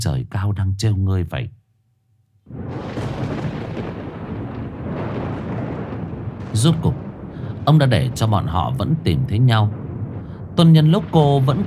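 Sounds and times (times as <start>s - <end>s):
speech: 0.0s - 1.6s, 6.6s - 7.0s, 7.6s - 9.8s, 10.6s - 11.6s
deep thunder rumbling through a forest during a lightning storm: 2.5s - 11.6s.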